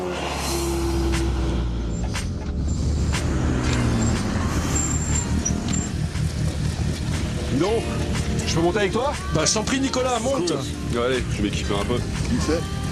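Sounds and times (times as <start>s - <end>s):
high whines: 0.0s - 7.5s
modified Opel Speedster sports car engine running: 0.9s - 12.8s
speech: 7.6s - 12.8s.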